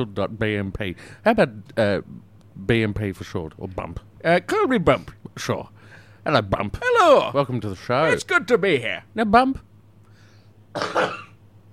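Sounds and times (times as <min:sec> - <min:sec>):
speech: 0:00.0 - 0:09.7, 0:10.8 - 0:11.3
person sneezing: 0:10.8 - 0:11.4.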